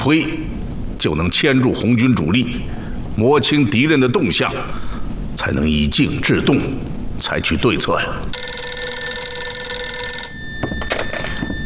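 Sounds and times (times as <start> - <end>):
speech: 0.0 - 8.5
telephone ringing with high electric bell tone: 8.4 - 11.6.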